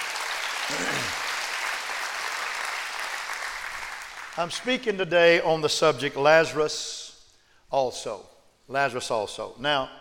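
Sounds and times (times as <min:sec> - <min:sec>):
audience clapping: 0:00.0 - 0:04.7
speech: 0:04.4 - 0:07.0, 0:07.7 - 0:09.9.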